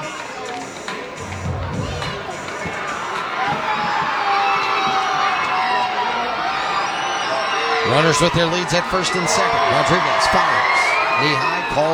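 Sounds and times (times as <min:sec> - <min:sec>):
ballpark crowd cheering: 0:00.0 - 0:11.9
speech: 0:08.0 - 0:11.9.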